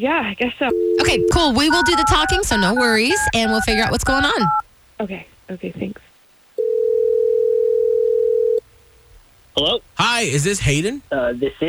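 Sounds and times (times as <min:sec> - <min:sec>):
speech: 0:00.0 - 0:06.1, 0:09.6 - 0:11.6
telephone dial tone while placing a call: 0:00.7 - 0:04.6, 0:06.6 - 0:08.6.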